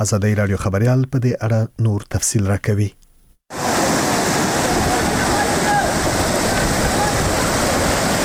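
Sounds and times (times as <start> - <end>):
speech: 0.0 - 3.0
mountain stream rushing over a washed-out road between Nari district and Asadabad: 3.5 - 8.2.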